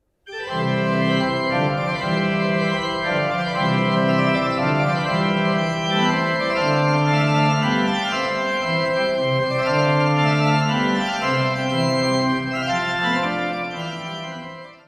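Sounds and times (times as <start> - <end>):
baroque courante: 0.0 - 14.8.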